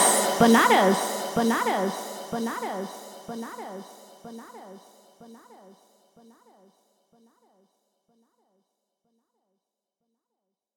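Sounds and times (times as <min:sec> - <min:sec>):
Bhojpuri Birha style DJ remix song: 0:00.0 - 0:03.8.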